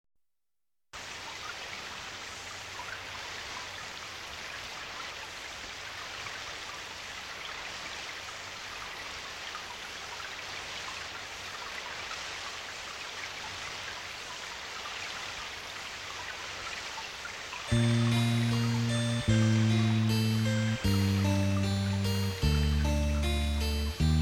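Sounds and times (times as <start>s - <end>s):
soft nature music: 17.7s - 24.2s.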